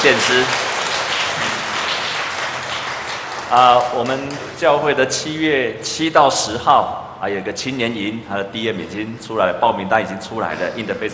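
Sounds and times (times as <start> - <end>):
speech: 0.0 - 0.7, 3.5 - 11.1
audience applauding the choir: 0.0 - 4.6.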